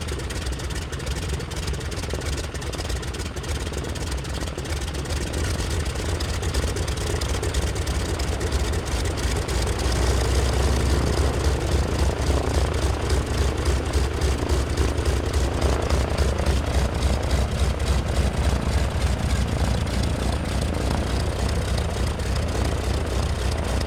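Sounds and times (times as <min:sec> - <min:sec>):
aircraft engine idling: 0:00.0 - 0:23.8
aircraft engine starting: 0:05.1 - 0:23.8.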